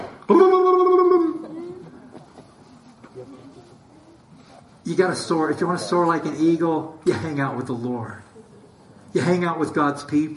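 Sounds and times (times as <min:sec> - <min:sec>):
speech: 0:00.3 - 0:00.6, 0:04.9 - 0:08.3, 0:09.2 - 0:10.3
voice imitating a turkey gobble: 0:00.3 - 0:02.0
quiet murmuring: 0:01.0 - 0:10.2.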